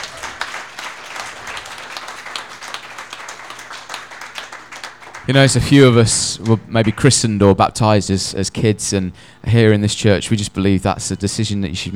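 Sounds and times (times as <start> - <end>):
audience clapping: 0.0 - 7.5
speech: 5.3 - 11.9.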